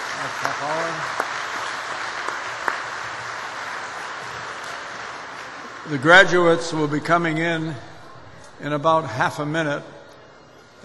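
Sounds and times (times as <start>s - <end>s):
audience applauding a jazz quintet: 0.0s - 6.2s
speech: 0.2s - 1.4s, 5.9s - 7.9s, 8.6s - 10.0s.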